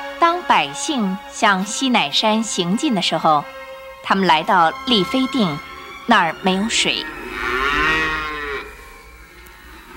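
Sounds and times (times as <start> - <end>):
quiet noise: 0.0 - 9.9
speech: 0.2 - 7.7
cow mooing: 5.0 - 9.9.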